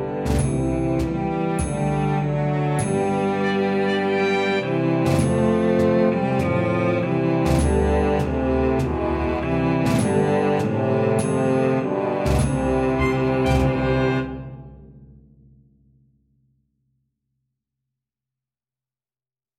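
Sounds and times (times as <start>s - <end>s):
cello melody: 0.0s - 14.8s.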